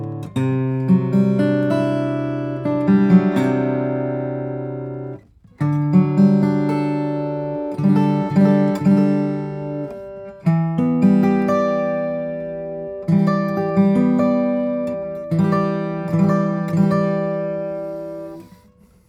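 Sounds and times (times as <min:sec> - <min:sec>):
Greenfield G1 steel-string flattop guitar of pernambuco and moonspruce: 0:00.0 - 0:19.0.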